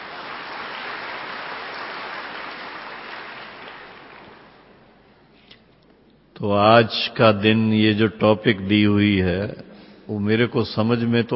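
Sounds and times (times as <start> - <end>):
audience clapping: 0.0 - 5.0
speech: 6.4 - 11.3.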